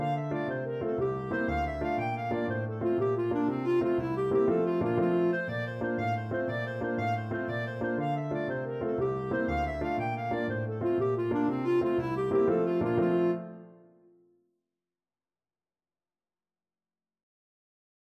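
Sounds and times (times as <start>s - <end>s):
Irish jig medley played on clarinet: 0.0s - 14.0s.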